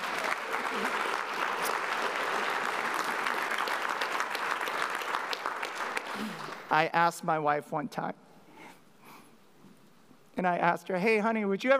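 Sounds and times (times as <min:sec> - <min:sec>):
audience applause: 0:00.0 - 0:06.7
speech: 0:06.7 - 0:08.3, 0:10.4 - 0:11.7.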